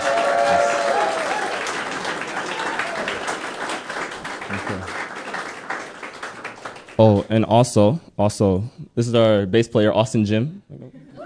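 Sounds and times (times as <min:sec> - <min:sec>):
audience applause: 0:00.0 - 0:07.0
speech: 0:07.0 - 0:10.6.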